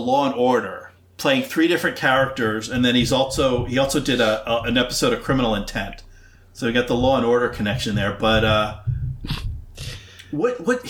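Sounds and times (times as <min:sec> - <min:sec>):
speech: 0:00.0 - 0:09.4, 0:10.3 - 0:10.8
person clearing throat or sinuses: 0:09.2 - 0:10.2.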